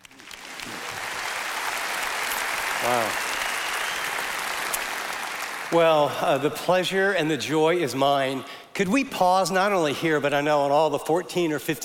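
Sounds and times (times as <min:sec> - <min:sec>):
audience applause welcoming a speaker at a church gathering: 0:00.0 - 0:06.1
speech: 0:05.7 - 0:11.8.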